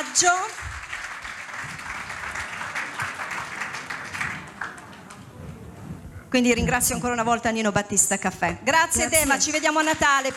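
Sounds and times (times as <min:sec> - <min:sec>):
audience applause: 0:00.0 - 0:06.2
speech: 0:00.2 - 0:00.7, 0:06.3 - 0:10.3.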